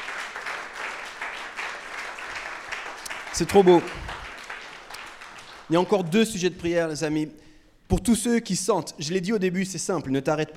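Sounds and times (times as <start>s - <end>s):
crowd applauding: 0.0s - 6.2s
speech: 3.4s - 4.0s, 5.7s - 10.5s.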